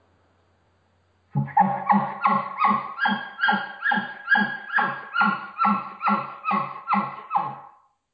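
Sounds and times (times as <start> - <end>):
game call blown on a latex reed: 1.4 - 7.6.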